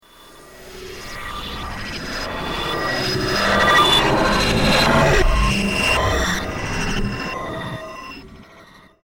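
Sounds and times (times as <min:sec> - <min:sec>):
sci-fi intergalactic space transmission: 0:00.7 - 0:08.9.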